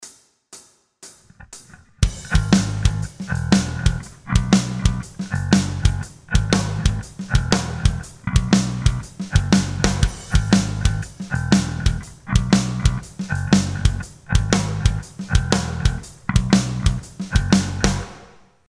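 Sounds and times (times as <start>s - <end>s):
backing track: 1.3s - 18.3s.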